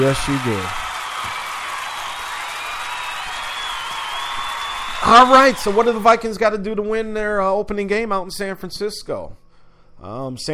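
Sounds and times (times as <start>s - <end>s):
speech: 0.0s - 0.9s, 5.0s - 9.4s, 10.0s - 10.5s
studio audience cheering and applauding during a Monday Night Football show: 0.0s - 6.5s.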